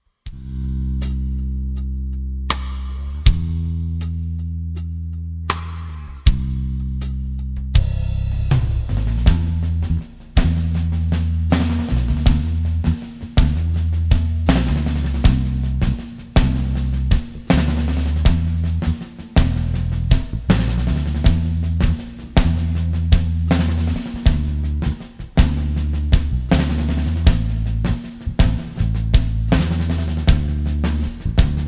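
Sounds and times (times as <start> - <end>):
rhythm: 0.3 - 31.6.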